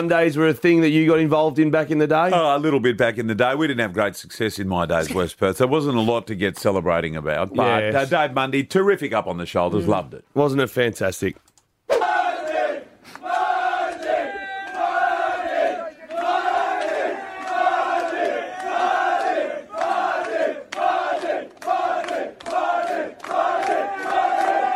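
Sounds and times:
speech: 0:00.0 - 0:12.0
group cheering: 0:11.9 - 0:24.7.

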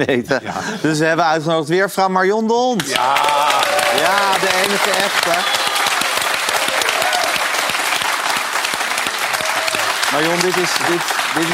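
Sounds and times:
speech: 0:00.0 - 0:05.7, 0:10.1 - 0:11.5
audience applause: 0:02.8 - 0:11.5
laughter: 0:02.9 - 0:05.6.

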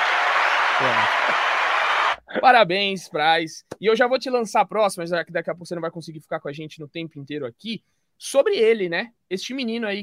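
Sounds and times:
applause sound effect: 0:00.0 - 0:02.2
speech: 0:00.8 - 0:01.5, 0:02.3 - 0:10.0.

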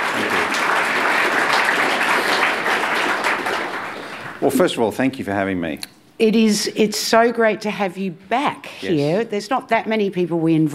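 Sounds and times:
audience applause welcoming a guest speaker: 0:00.0 - 0:04.9
speech: 0:04.4 - 0:10.7.

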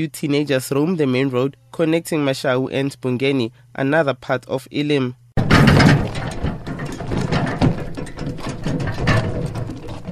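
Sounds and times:
speech: 0:00.0 - 0:06.0
wheelbarrow being pushed along road: 0:05.4 - 0:10.1.

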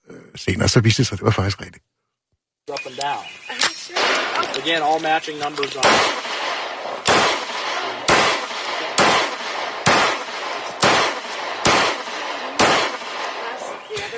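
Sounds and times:
speech: 0:00.4 - 0:01.9, 0:02.8 - 0:07.0
Luger P08 Parabellum pistol being fired: 0:04.0 - 0:13.9.

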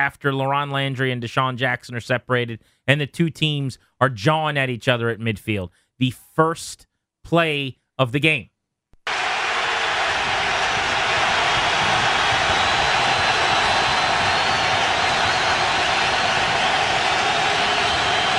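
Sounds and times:
speech: 0:00.0 - 0:08.5
large stadium crowd roar: 0:09.0 - 0:18.3.

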